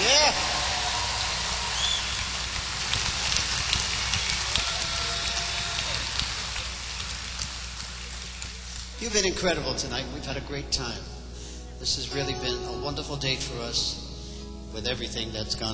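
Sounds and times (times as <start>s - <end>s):
faint cheers: 0.0s - 2.4s, 3.9s - 6.4s
audience applause: 0.0s - 9.0s
speech: 9.0s - 11.2s, 11.8s - 14.0s, 14.7s - 15.7s.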